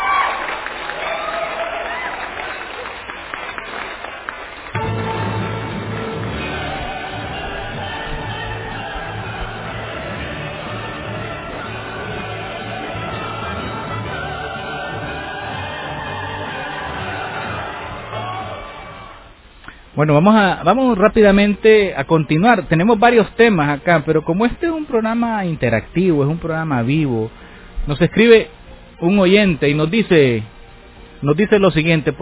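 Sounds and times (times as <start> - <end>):
cheering: 0.0 - 4.8, 14.8 - 19.3
applause: 0.0 - 5.3, 17.2 - 19.2
speech: 20.0 - 30.5, 31.2 - 32.1.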